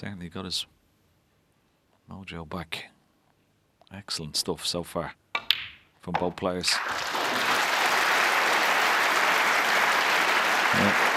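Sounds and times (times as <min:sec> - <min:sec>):
speech: 0:00.0 - 0:00.8, 0:02.1 - 0:03.0, 0:03.9 - 0:07.1
crowd applause at snooker venue: 0:06.7 - 0:11.1.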